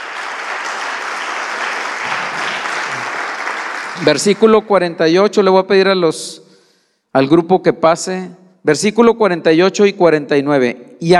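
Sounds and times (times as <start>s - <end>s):
audience giving loud applause: 0.0s - 4.4s
speech: 4.0s - 6.4s, 7.1s - 11.1s.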